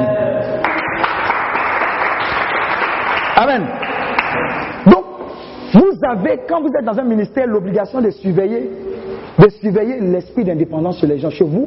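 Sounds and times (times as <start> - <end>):
church congregation applauding: 0.6 - 5.0
speech: 3.4 - 5.0, 5.8 - 8.8, 9.4 - 11.6.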